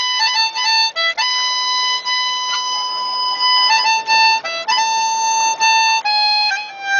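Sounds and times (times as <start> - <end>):
harmonica: 0.0 - 6.9.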